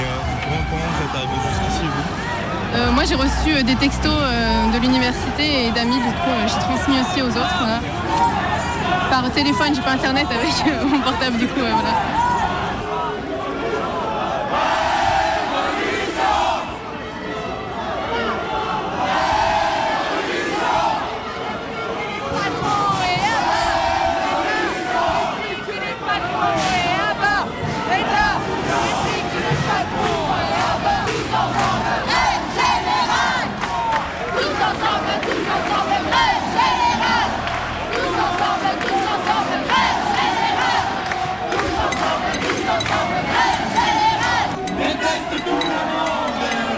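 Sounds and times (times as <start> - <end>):
street protest crowd chanting and shouting: 0.0 - 46.7
speech: 2.7 - 8.4, 9.1 - 12.3.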